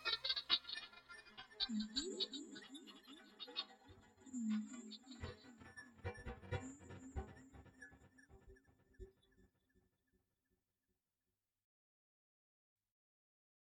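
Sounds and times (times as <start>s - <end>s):
trance music: 0.0s - 9.1s.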